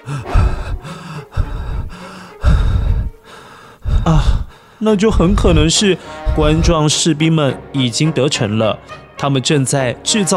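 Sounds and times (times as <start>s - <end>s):
person breathing rapidly with gasping breaths: 0.0s - 6.8s
speech: 4.1s - 10.3s.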